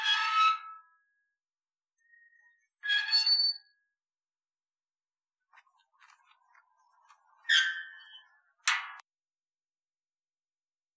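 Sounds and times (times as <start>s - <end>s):
squeaky gate: 2.8s - 3.7s, 7.4s - 9.0s.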